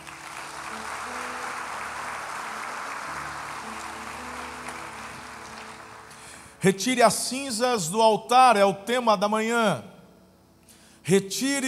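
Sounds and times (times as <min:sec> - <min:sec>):
audience applause: 0:00.0 - 0:06.6
speech: 0:06.6 - 0:09.9, 0:11.1 - 0:11.6.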